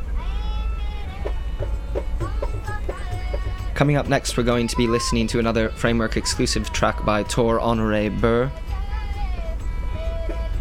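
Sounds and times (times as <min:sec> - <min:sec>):
ambience aboard the Kerala Express passenger train in India: 0:00.0 - 0:10.6
speech: 0:03.8 - 0:08.7.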